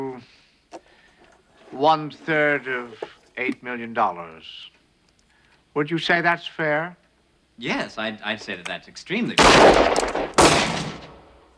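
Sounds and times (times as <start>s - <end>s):
speech: 0.1s - 0.4s, 1.7s - 4.8s, 5.8s - 7.0s, 7.6s - 10.4s
soft rustle: 0.7s - 3.5s
gunshot fired in a darkened room: 9.4s - 11.5s.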